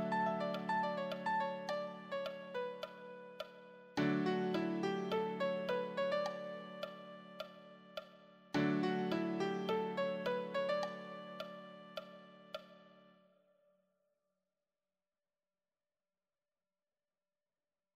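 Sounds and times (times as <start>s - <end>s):
easy solo piano: 0.0s - 13.1s.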